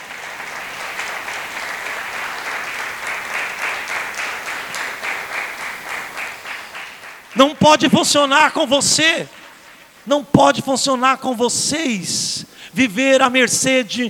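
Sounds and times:
audience applause: 0.0s - 10.0s
speech: 7.4s - 9.4s, 10.1s - 14.0s.

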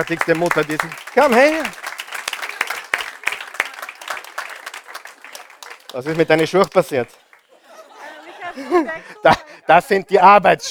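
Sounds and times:
speech: 0.0s - 1.8s, 6.0s - 7.2s, 8.6s - 10.6s
audience applauding: 0.0s - 9.2s
laughter: 0.0s - 10.6s.

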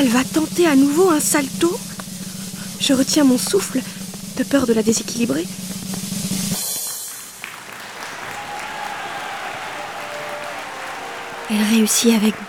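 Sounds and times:
speech: 0.0s - 1.9s, 2.8s - 5.7s, 11.5s - 12.4s
circus audience applause: 6.7s - 12.4s.

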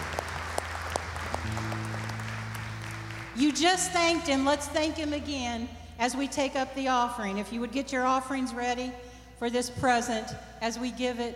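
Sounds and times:
audience clapping: 0.0s - 4.4s
speech: 3.4s - 11.3s.

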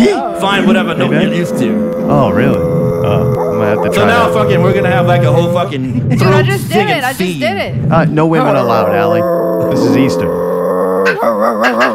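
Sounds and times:
speech: 0.4s - 10.5s
person yawning into a dog bark imitation: 1.8s - 4.5s, 9.2s - 11.9s.

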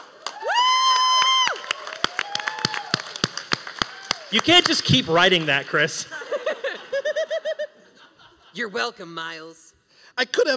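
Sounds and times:
rapturous applause sound effect: 0.0s - 7.0s
speech: 4.3s - 6.2s, 8.6s - 10.5s
laughter: 4.3s - 8.7s.

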